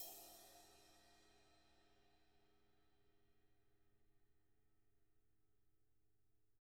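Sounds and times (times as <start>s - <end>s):
brushed cymbal: 0.0s - 2.0s.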